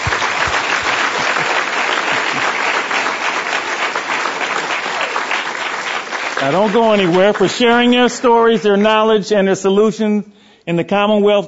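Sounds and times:
audience applause: 0:00.0 - 0:09.1
speech: 0:06.4 - 0:11.4.

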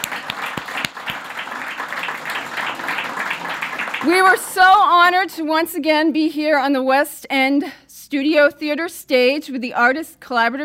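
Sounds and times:
theater audience applauding after a storytelling performance: 0:00.0 - 0:04.6
speech: 0:04.0 - 0:10.6.

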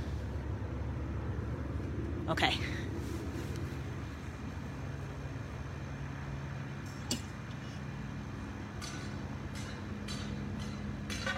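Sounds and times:
distant helicopters whirring: 0:00.0 - 0:11.3
speech: 0:02.3 - 0:02.8.

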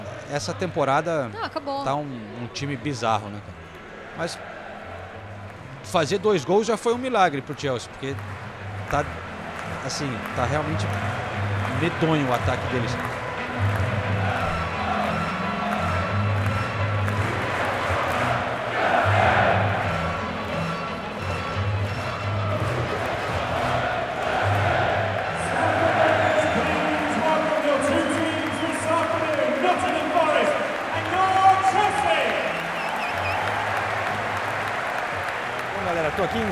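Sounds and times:
stadium noise: 0:00.0 - 0:36.4
speech: 0:00.3 - 0:03.6, 0:04.2 - 0:04.5, 0:05.9 - 0:09.2, 0:09.8 - 0:11.2, 0:11.8 - 0:13.1
large football crowd singing chants in a stadium: 0:17.4 - 0:20.2, 0:22.6 - 0:26.6.

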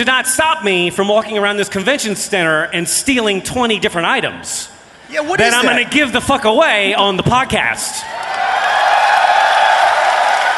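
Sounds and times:
speech: 0:00.0 - 0:08.4
laughter: 0:05.4 - 0:06.0
audience cheering: 0:08.0 - 0:10.5.

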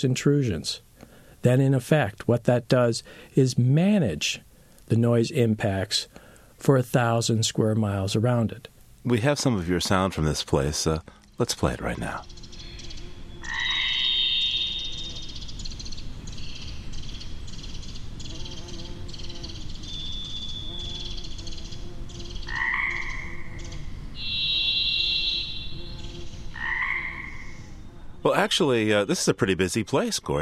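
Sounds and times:
speech: 0:00.0 - 0:12.4, 0:28.3 - 0:30.4
Pacific chorus frogs croaking in a springtime chorus: 0:11.9 - 0:18.5, 0:22.2 - 0:27.7
varied thrush singing long buzzy whistled notes: 0:12.3 - 0:15.7, 0:23.6 - 0:26.4.

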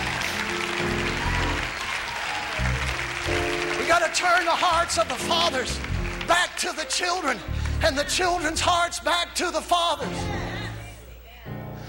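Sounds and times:
audience clapping hands: 0:00.0 - 0:08.9
speech: 0:04.1 - 0:10.4.

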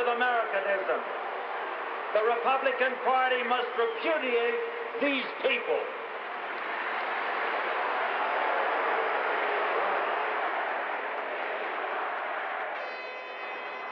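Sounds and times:
crowd booing: 0:00.0 - 0:13.9
speech: 0:02.1 - 0:06.0
crowd chanting: 0:06.2 - 0:13.9.

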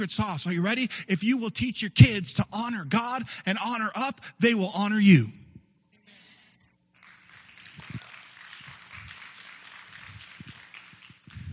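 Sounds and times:
speech: 0:00.0 - 0:05.4
audience applause: 0:07.0 - 0:11.5.

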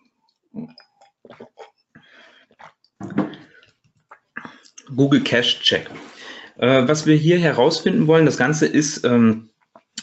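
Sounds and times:
person sipping a drink: 0:00.6 - 0:04.9
speech: 0:05.0 - 0:09.5.

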